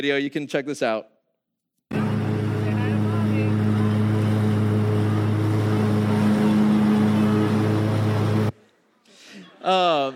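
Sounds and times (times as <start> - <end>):
speech: 0.0 - 1.2, 9.6 - 10.1
lawn mower engine running: 1.9 - 8.5.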